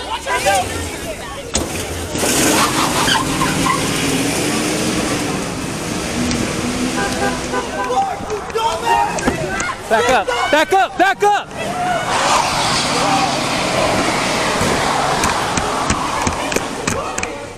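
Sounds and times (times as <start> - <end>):
truck driving away chaotically: 0.1 - 9.8, 11.5 - 17.5
speech: 10.1 - 11.5.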